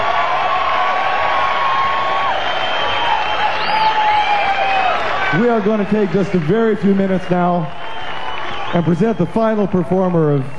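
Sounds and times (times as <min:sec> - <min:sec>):
crowd applause for a band: 0:00.0 - 0:10.5
shrill whistles: 0:01.8 - 0:05.2, 0:07.7 - 0:09.1
speech: 0:05.4 - 0:07.8, 0:08.7 - 0:10.5.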